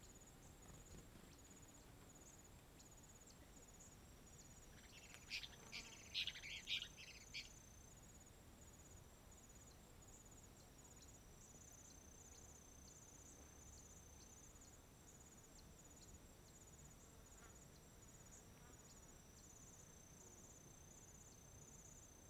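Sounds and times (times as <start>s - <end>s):
crickets chirping in a park in Chapada dos Veadeiros: 0.1s - 22.2s.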